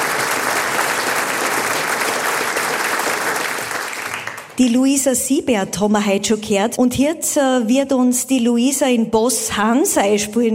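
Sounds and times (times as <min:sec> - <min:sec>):
audience applause: 0:00.0 - 0:04.6
speech: 0:04.6 - 0:10.5.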